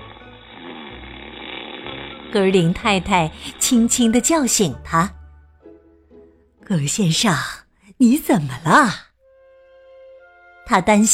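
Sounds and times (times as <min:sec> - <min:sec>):
snoring: 0:00.0 - 0:04.4
speech: 0:02.3 - 0:05.2, 0:06.7 - 0:09.1, 0:10.7 - 0:11.1.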